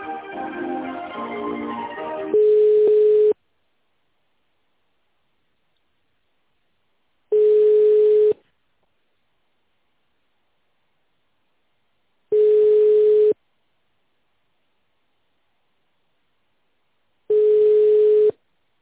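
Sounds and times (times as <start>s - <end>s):
ringback tone of an unanswered phone call: 2.3s - 3.4s, 7.3s - 8.4s, 12.3s - 13.4s, 17.3s - 18.4s.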